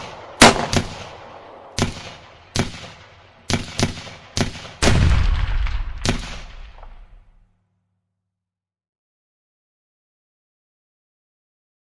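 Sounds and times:
bomb explosions: 0:00.0 - 0:07.4
gunfire in a shootout: 0:00.0 - 0:07.4.

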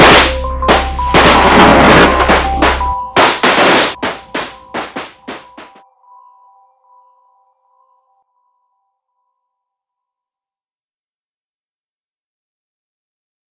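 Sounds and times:
celestial sound: 0:00.0 - 0:05.8.

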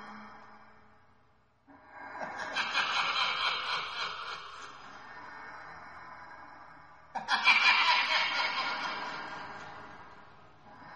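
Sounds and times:
horror laughter: 0:02.2 - 0:05.1, 0:07.1 - 0:10.1.

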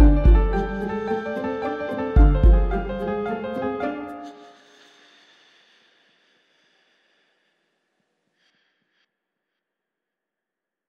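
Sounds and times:
detective investigation and mystery music for children: 0:00.0 - 0:04.1.

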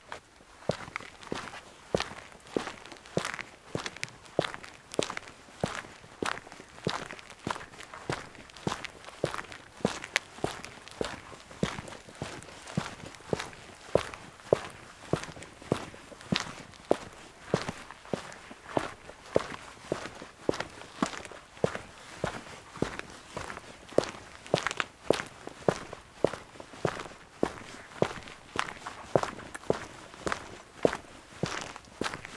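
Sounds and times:
fast footsteps on concrete: 0:00.7 - 0:32.3.

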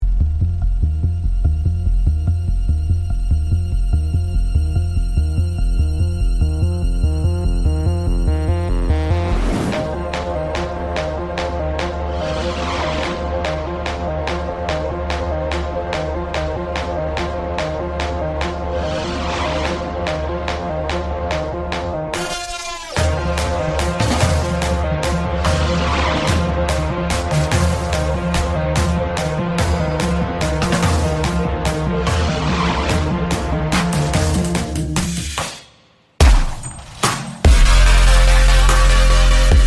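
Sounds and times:
instrumental start screen theme: 0:00.2 - 0:39.6.

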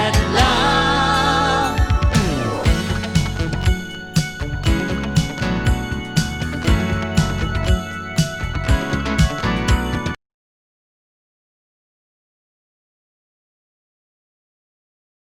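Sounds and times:
modern funky soul boogie music: 0:00.0 - 0:10.2.

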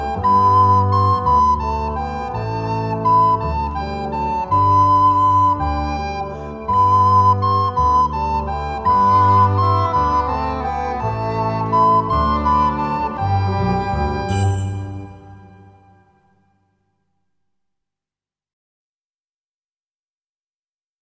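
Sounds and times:
waltz: 0:00.0 - 0:16.5.

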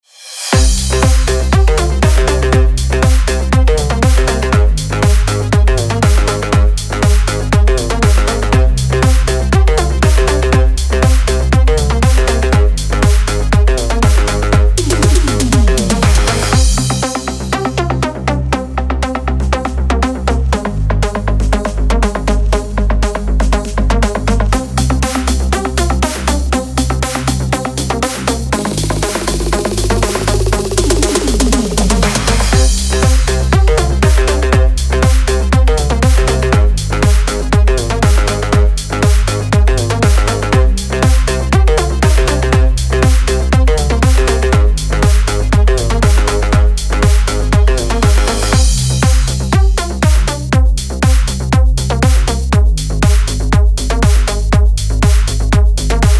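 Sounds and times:
synthwave background music: 0:00.4 - 0:56.1.

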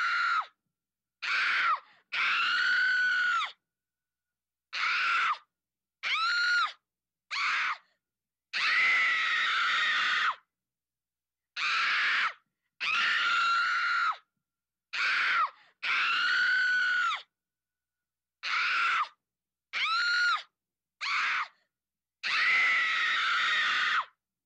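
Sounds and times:
children screaming in fear: 0:00.0 - 0:00.6, 0:01.2 - 0:03.6, 0:04.7 - 0:05.4, 0:06.0 - 0:07.8, 0:08.5 - 0:10.4, 0:11.6 - 0:14.2, 0:14.9 - 0:17.3, 0:18.4 - 0:19.2, 0:19.8 - 0:21.6, 0:22.2 - 0:24.2.

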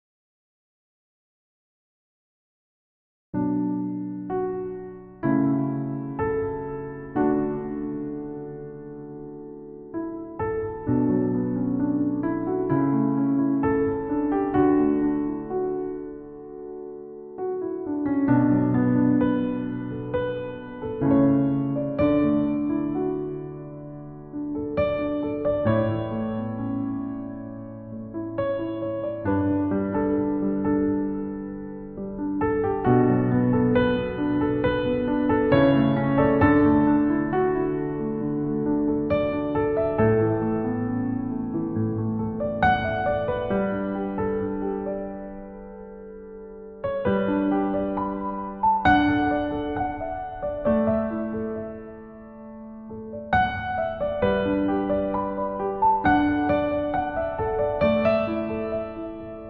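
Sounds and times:
piano cover: 0:03.4 - 0:59.4.

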